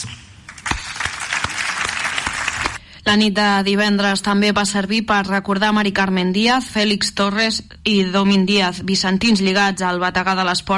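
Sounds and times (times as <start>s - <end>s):
audience applause: 0.5s - 2.8s
speech: 3.1s - 10.7s.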